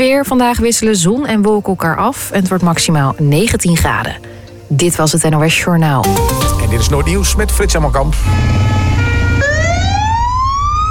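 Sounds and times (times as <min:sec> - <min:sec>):
speech: 0:00.0 - 0:08.8
fire engine siren: 0:06.5 - 0:10.9.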